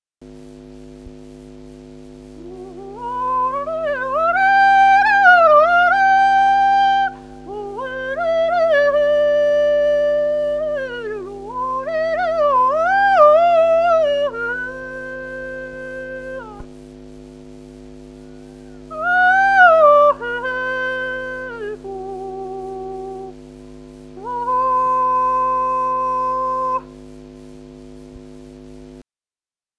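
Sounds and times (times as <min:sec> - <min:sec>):
herding call for goats: 0:02.4 - 0:16.6, 0:18.2 - 0:23.3, 0:24.2 - 0:27.0.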